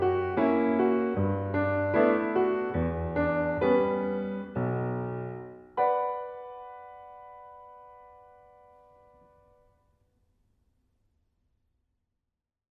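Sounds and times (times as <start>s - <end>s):
piano: 0.0s - 10.0s.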